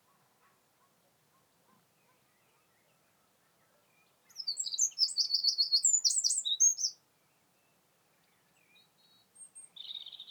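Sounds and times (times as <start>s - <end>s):
Eurasian wren Troglodytes troglodytes singing: 4.2s - 7.0s, 8.6s - 10.3s.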